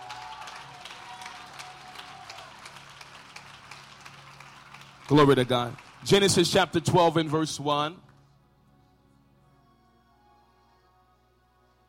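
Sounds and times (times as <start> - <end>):
audience clapping: 0.0 - 8.2
speech: 5.1 - 8.0.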